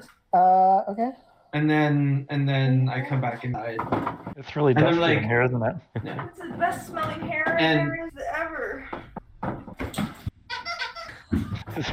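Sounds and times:
speech: 0.0 - 9.0, 11.8 - 11.9
squeaky dog toy being squeezed: 10.4 - 11.4.

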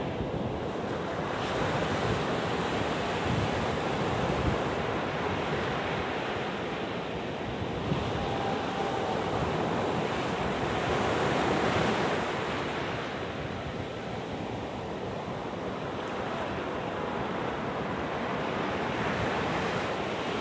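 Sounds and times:
ocean surf breaking at evening in Danang, Vietnam: 0.2 - 20.3
faint wind buffeting: 7.3 - 15.7.

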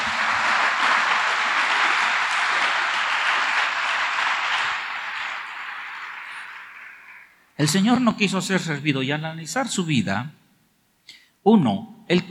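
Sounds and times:
audience applause: 0.0 - 7.5
speech: 7.6 - 10.4, 11.4 - 12.2.

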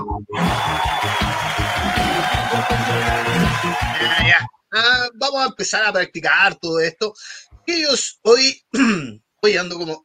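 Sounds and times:
audience applause: 0.4 - 4.3
speech: 4.8 - 10.0.

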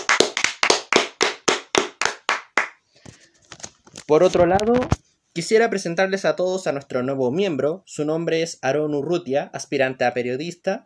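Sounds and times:
applause: 0.0 - 2.8
speech: 4.1 - 10.8.

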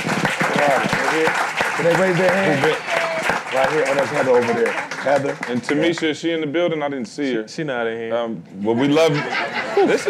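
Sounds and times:
audience applause: 0.0 - 6.1
speech: 0.6 - 10.0
laughter: 8.7 - 10.0.

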